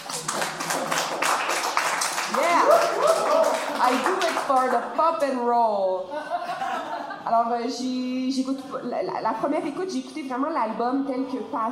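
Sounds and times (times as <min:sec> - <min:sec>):
clapping applause: 0:00.0 - 0:04.8
speech: 0:03.8 - 0:11.7
laughter: 0:06.1 - 0:07.4.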